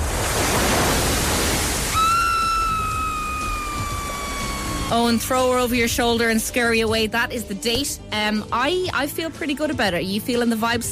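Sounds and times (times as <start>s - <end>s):
tide coming in on a beach: 0.0s - 5.2s
speech: 4.9s - 10.9s.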